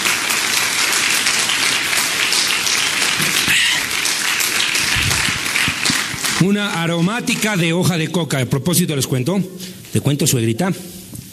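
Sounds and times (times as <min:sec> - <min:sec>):
audience applause: 0:00.0 - 0:06.9
speech: 0:06.4 - 0:11.0.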